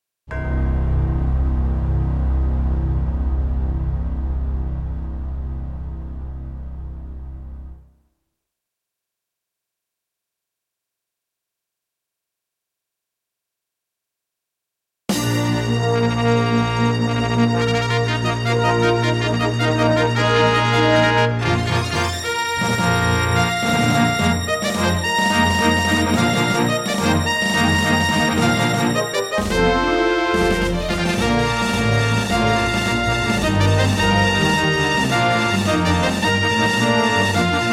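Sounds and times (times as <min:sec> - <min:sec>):
Yamaha QY70 synthesizer music intro: 0:00.6 - 0:07.8, 0:15.1 - 0:37.7.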